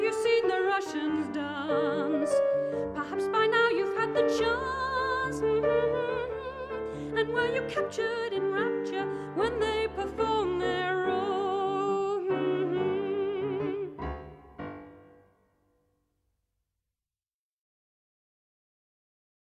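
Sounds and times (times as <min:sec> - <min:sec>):
tango music: 0:00.0 - 0:15.1.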